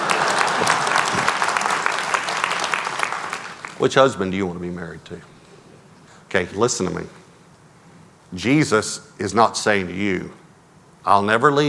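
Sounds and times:
women in audience clapping: 0:00.0 - 0:03.8
speech: 0:03.8 - 0:05.3, 0:06.3 - 0:07.2, 0:08.3 - 0:10.4, 0:11.0 - 0:11.6.

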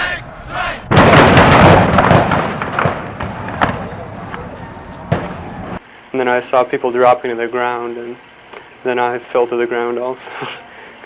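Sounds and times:
gunshots: 0:00.9 - 0:05.8
speech: 0:06.2 - 0:11.0.

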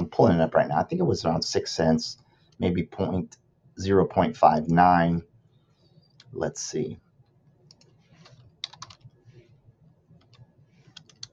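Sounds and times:
low steady hum: 0:00.0 - 0:11.3
speech: 0:00.2 - 0:05.3, 0:06.3 - 0:07.0
typing on a computer keyboard: 0:07.7 - 0:09.1, 0:10.2 - 0:11.3.

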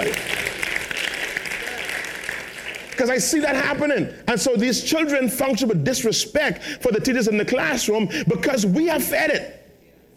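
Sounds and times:
audience clapping: 0:00.0 - 0:03.5
speech: 0:03.0 - 0:09.6.

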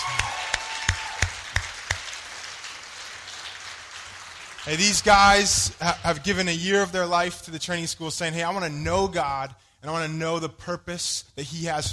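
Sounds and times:
audience round of applause: 0:00.0 - 0:06.1
speech: 0:04.6 - 0:11.9.

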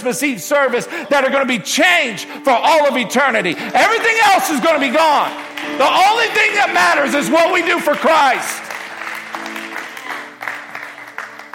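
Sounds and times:
speech: 0:00.0 - 0:08.6
audience clapping: 0:02.8 - 0:11.5.

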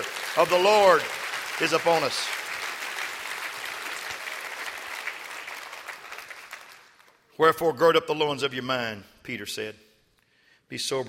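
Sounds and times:
audience clapping hands: 0:00.0 - 0:07.3
speech: 0:00.4 - 0:02.4, 0:07.4 - 0:09.8, 0:10.7 - 0:11.0.

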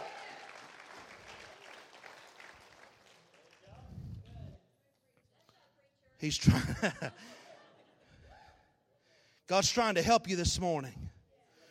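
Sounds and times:
audience hand clapping: 0:00.0 - 0:04.4
speech: 0:06.2 - 0:07.4, 0:09.5 - 0:11.0
laughter: 0:06.3 - 0:08.7.

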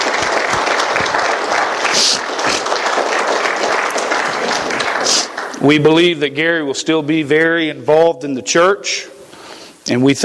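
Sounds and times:
audience applause: 0:00.0 - 0:05.9
speech: 0:05.6 - 0:09.2, 0:09.9 - 0:10.2.

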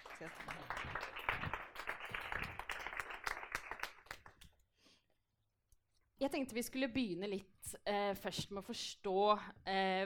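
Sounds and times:
audience applause: 0:00.0 - 0:04.4
speech: 0:00.2 - 0:00.7, 0:06.2 - 0:10.0.

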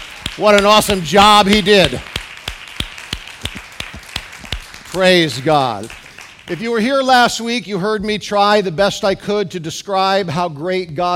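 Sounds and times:
hands clapping: 0:00.0 - 0:07.0
speech: 0:00.4 - 0:02.1, 0:04.9 - 0:11.1.

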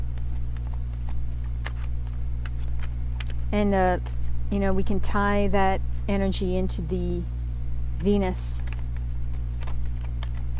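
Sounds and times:
deck of cards being shuffled: 0:00.0 - 0:04.4, 0:08.0 - 0:10.5
steady low hum: 0:00.0 - 0:10.5
speech: 0:03.5 - 0:07.4, 0:08.0 - 0:08.7.

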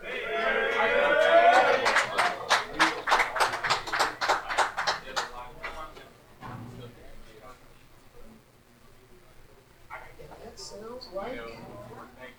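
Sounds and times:
audience applause: 0:00.0 - 0:05.9.

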